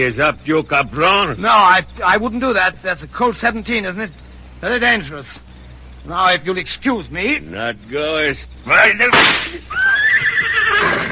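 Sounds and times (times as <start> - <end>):
speech: 0.0 - 10.2
excited voices talking loudly: 0.0 - 10.4
horse neighing: 9.7 - 11.0.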